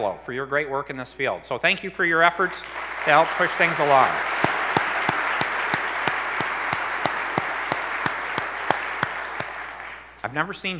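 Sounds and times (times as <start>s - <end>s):
speech: 0.0s - 4.5s, 10.2s - 10.7s
audience applause: 2.6s - 10.2s.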